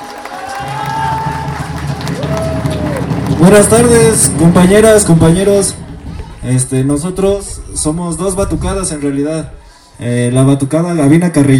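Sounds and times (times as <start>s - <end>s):
audience applause: 0.0s - 6.7s
speech: 3.4s - 5.8s, 6.4s - 11.5s.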